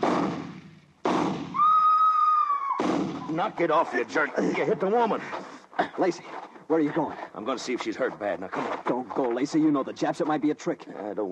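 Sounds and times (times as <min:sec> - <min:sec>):
rifle shots: 0:00.0 - 0:01.6
high-pitched wail: 0:01.6 - 0:03.3
speech: 0:03.4 - 0:11.2.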